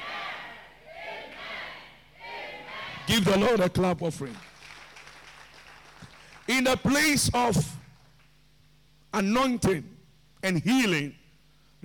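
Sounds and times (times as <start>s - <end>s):
church congregation shouting amen during a service: 0.0s - 3.8s
speech: 3.1s - 4.5s, 6.6s - 7.7s, 9.2s - 11.2s.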